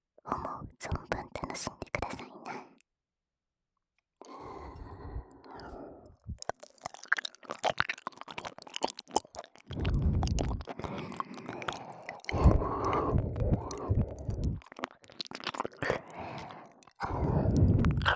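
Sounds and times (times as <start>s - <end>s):
ASMR ear licking on the left side: 4.3s - 18.1s.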